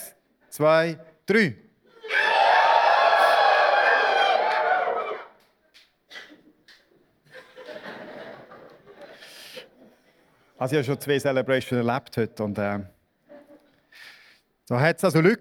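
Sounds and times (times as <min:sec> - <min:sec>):
speech: 0:00.6 - 0:01.6, 0:10.6 - 0:13.0, 0:14.7 - 0:15.3
people shouting: 0:02.0 - 0:05.3
crowd cheering and whooping: 0:02.0 - 0:05.4
people laughing: 0:07.2 - 0:10.2.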